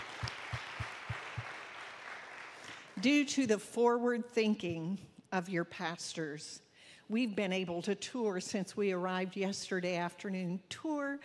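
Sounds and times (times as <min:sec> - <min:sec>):
audience applause: 0:00.0 - 0:03.0
speech: 0:03.0 - 0:11.2.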